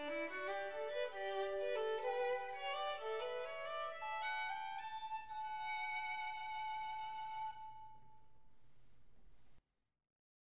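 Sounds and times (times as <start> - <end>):
classical piece: 0.0 - 8.2.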